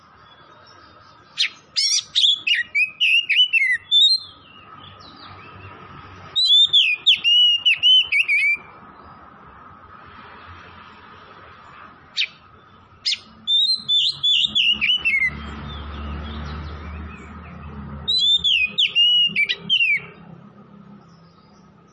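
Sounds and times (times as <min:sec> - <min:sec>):
oriental magpie-robin song: 0:00.2 - 0:08.8, 0:12.2 - 0:20.2.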